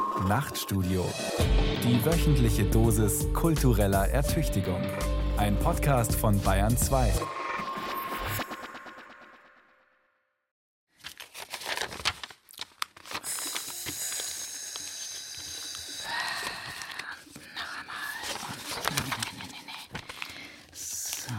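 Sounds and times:
speech: 0:00.2 - 0:07.4
crinkling and rustling of something being folded: 0:10.9 - 0:14.9, 0:16.3 - 0:21.3.

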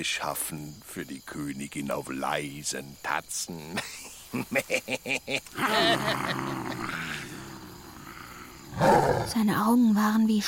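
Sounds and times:
speech: 0:00.0 - 0:07.1, 0:08.8 - 0:10.4
laughter: 0:03.7 - 0:07.4
tiger growling and roaring: 0:05.5 - 0:09.4.

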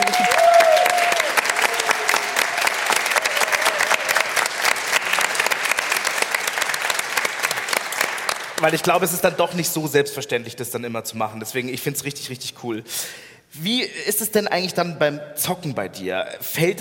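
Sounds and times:
applause: 0:00.0 - 0:09.2
speech: 0:08.6 - 0:16.7.

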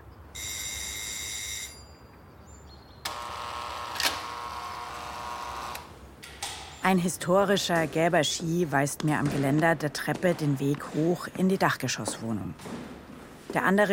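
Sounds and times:
doorbell ringing: 0:00.4 - 0:02.0
speech: 0:06.9 - 0:13.9.

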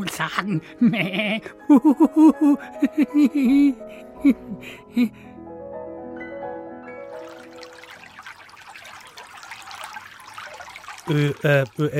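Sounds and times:
speech: 0:00.0 - 0:05.3, 0:11.1 - 0:11.9
laughter: 0:00.8 - 0:05.1
river water splashing and trickling: 0:07.1 - 0:11.9.

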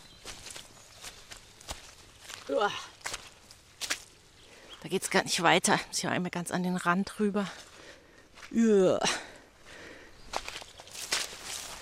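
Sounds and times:
hiking boot footsteps squelching along a flooded, swampy hiking path: 0:00.0 - 0:04.2, 0:10.3 - 0:11.7
speech: 0:02.5 - 0:03.0, 0:04.8 - 0:07.6, 0:08.5 - 0:09.2.

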